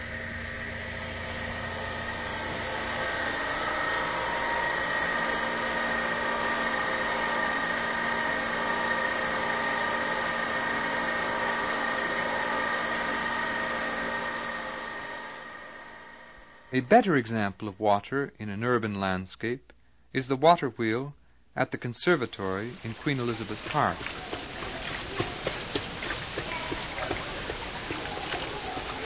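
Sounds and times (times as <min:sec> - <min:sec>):
whine of a garden waterfall's generator pump: 0:00.0 - 0:17.4, 0:22.1 - 0:29.0
speech: 0:16.7 - 0:24.4.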